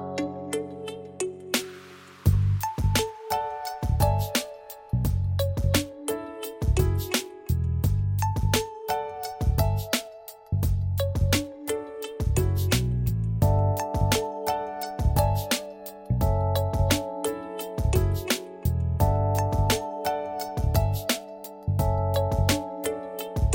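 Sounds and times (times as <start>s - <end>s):
hip-hop beat: 0.2s - 23.5s.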